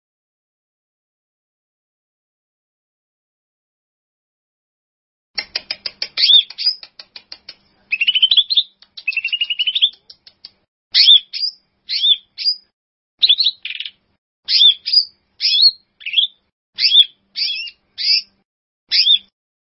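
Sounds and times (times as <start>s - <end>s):
bird song: 5.4s - 19.3s.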